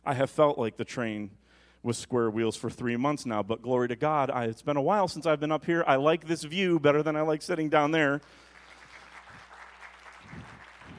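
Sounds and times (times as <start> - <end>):
speech: 0.1 - 8.5
audience clapping: 8.2 - 10.9.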